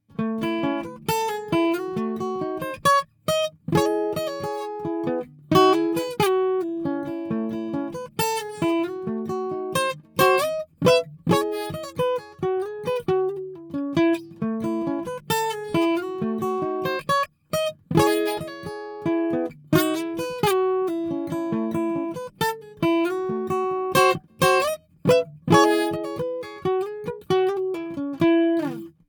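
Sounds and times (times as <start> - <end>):
Hummingbird guitars recorded with a DPA 4011 microphone: 0.0 - 29.0.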